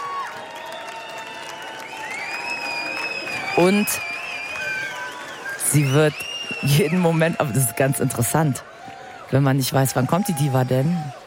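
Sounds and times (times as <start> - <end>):
crowd applauding and cheering: 0.0 - 11.2
shrill whistles: 0.6 - 7.3
speech: 3.6 - 4.1, 5.7 - 8.7, 9.3 - 11.2.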